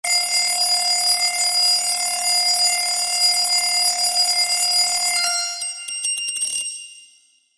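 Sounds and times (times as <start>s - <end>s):
broken alarm: 0.0s - 6.2s.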